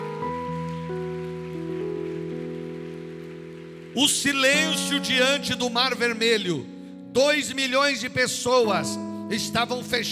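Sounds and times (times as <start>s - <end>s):
audience applauding: 0.0s - 6.1s
speech: 4.0s - 10.1s.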